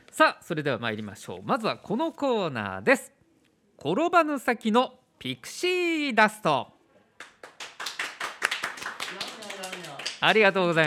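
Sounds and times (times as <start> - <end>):
speech: 0.2 - 3.2, 3.8 - 6.8, 10.2 - 10.8
sparse applause: 7.2 - 10.8.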